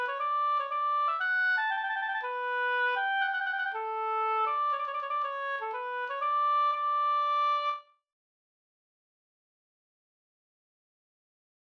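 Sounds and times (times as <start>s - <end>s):
polska folk dance tune in D major: 0.0s - 7.8s.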